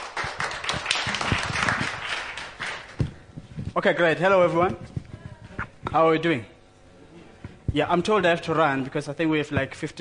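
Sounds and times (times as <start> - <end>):
audience applause: 0.0 - 3.0
speech: 3.8 - 4.9, 5.9 - 6.5, 7.7 - 9.9.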